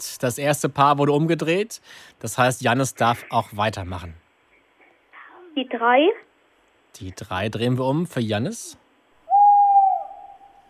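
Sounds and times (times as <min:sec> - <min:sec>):
speech: 0:00.0 - 0:04.2, 0:05.6 - 0:06.3, 0:07.0 - 0:08.8
tawny owl hooting: 0:09.2 - 0:10.6.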